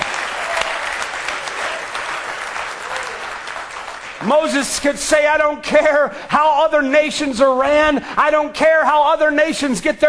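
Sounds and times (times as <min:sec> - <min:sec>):
audience clapping hands: 0:00.0 - 0:04.9
speech: 0:04.2 - 0:10.0.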